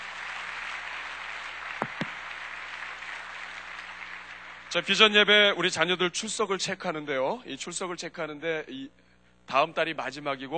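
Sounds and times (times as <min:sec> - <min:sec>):
audience applause: 0:00.0 - 0:05.4
speech: 0:04.7 - 0:10.5.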